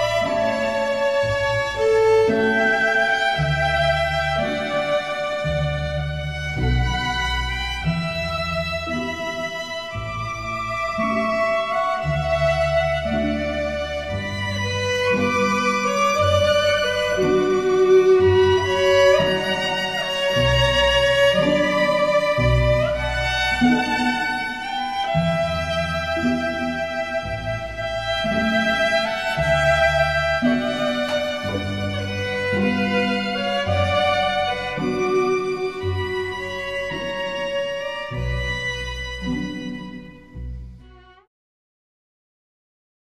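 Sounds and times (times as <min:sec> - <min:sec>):
viol: 0:00.0 - 0:41.3.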